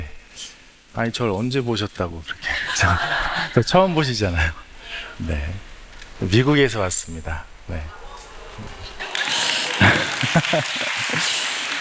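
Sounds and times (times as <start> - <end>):
speech: 1.0 - 4.6, 5.2 - 8.0, 10.3 - 11.4
voice-like sounds: 2.0 - 11.6
laughter: 2.4 - 4.6, 9.0 - 11.7
audience applause: 8.0 - 11.7.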